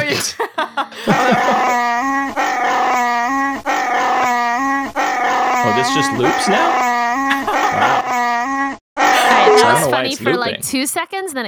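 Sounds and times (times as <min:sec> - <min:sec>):
laughter: 0:00.0 - 0:02.3, 0:05.6 - 0:08.5, 0:09.1 - 0:10.5
speech: 0:00.1 - 0:01.6, 0:06.0 - 0:06.9, 0:09.6 - 0:11.4
Wookiee roar sound effect: 0:01.2 - 0:10.0.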